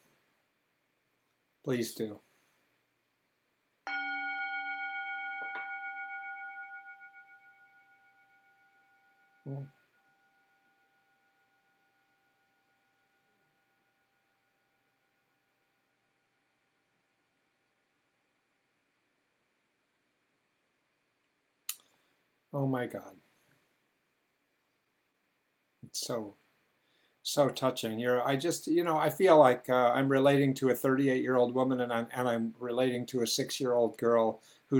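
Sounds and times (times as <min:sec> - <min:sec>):
speech: 0:01.6 - 0:02.3, 0:09.5 - 0:09.8, 0:22.6 - 0:23.2, 0:25.9 - 0:26.4, 0:27.2 - 0:34.7
bell ringing: 0:03.9 - 0:13.5.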